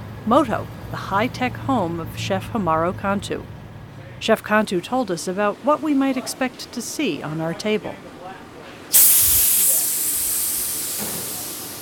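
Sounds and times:
speech: 0.2s - 3.6s, 4.2s - 8.1s
pressurised carbon dioxide at 130 psi venting from a fermentation chamber: 8.9s - 11.8s.

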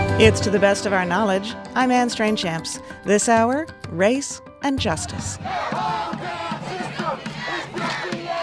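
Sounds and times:
speech: 0.2s - 6.2s
demonstration crowd shouting in Madison: 5.4s - 8.4s.

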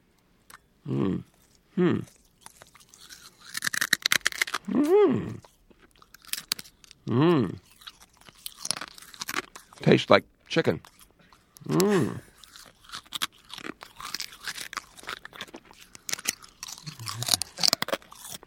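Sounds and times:
person chewing glass: 0.4s - 9.8s, 10.8s - 18.4s
vocal groans and hums: 0.8s - 2.1s, 4.7s - 5.5s, 7.0s - 7.6s, 11.6s - 12.3s, 16.8s - 17.8s
speech: 0.9s - 2.2s, 4.7s - 5.4s, 7.1s - 7.6s, 9.8s - 10.9s, 11.7s - 12.3s.

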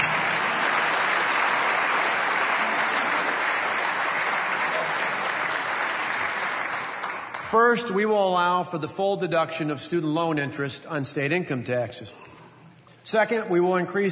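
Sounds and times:
audience applause: 0.0s - 7.6s
speech: 7.5s - 12.2s, 13.1s - 14.1s.

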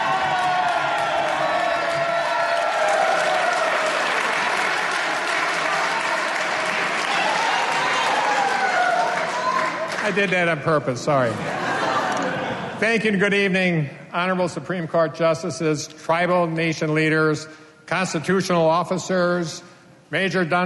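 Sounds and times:
faint cheers and whoops: 0.0s - 4.3s, 5.6s - 9.8s
audience clapping: 0.0s - 10.5s
speech: 10.1s - 11.7s, 12.8s - 20.6s
laughter: 11.2s - 12.8s.

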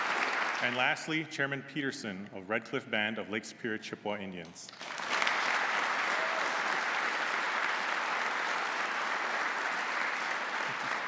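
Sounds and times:
audience applause: 0.0s - 0.8s, 4.8s - 11.0s
speech: 0.6s - 5.1s.

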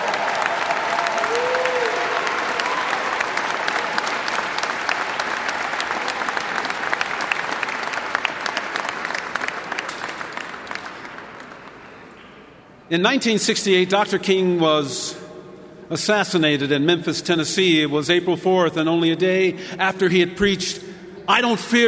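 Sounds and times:
audience applause: 0.0s - 12.0s
speech: 12.9s - 15.2s, 15.9s - 21.8s.

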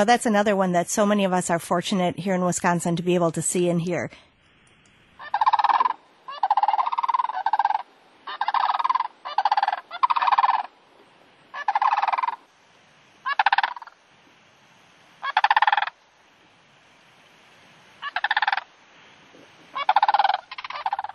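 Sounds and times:
speech: 0.0s - 4.3s
sandhill cranes calling in rolling rattles: 5.2s - 10.8s, 11.5s - 12.5s, 13.2s - 14.0s, 15.2s - 16.0s, 18.0s - 18.7s, 19.6s - 21.1s.

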